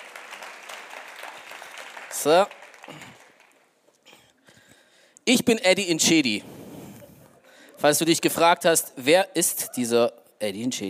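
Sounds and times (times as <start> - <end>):
audience applause: 0.0 - 3.7
speech: 2.2 - 3.1, 5.3 - 6.5, 7.8 - 10.8.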